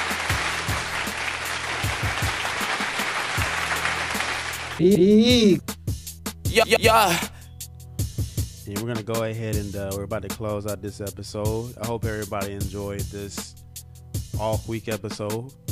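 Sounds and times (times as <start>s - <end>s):
audience applause: 0.0s - 4.8s
speech: 4.8s - 5.7s, 6.6s - 7.3s, 8.7s - 13.6s, 14.4s - 15.6s.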